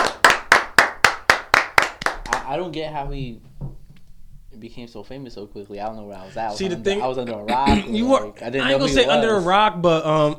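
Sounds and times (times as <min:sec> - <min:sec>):
audience clapping: 0:00.0 - 0:02.6
speech: 0:02.5 - 0:03.8, 0:04.5 - 0:10.3.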